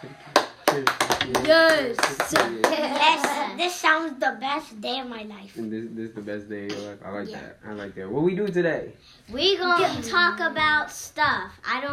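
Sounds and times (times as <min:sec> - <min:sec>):
speech: 0:00.0 - 0:11.9
hand claps: 0:00.3 - 0:03.4.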